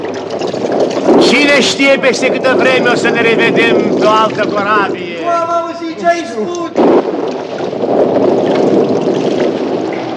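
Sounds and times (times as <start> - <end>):
storm wind at sea: 0.0 - 10.1
speech: 1.6 - 7.2.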